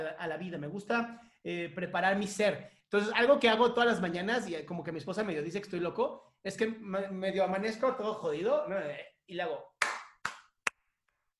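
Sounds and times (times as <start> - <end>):
speech: 0.0 - 9.7
one person clapping hands: 9.8 - 10.8.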